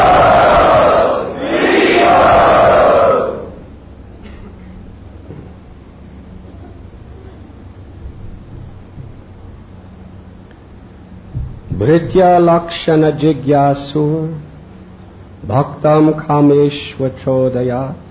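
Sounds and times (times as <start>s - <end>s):
crowd cheering and shouting at the Sri Sri Radha Gopinath temple: 0.0s - 3.6s
speech: 11.9s - 14.5s, 15.4s - 18.1s.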